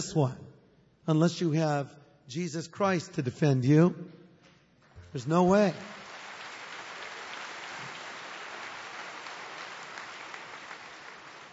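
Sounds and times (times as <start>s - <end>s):
speech: 0.0s - 0.4s, 1.0s - 4.2s, 5.1s - 6.0s
delayed clapping from audience: 4.8s - 11.5s.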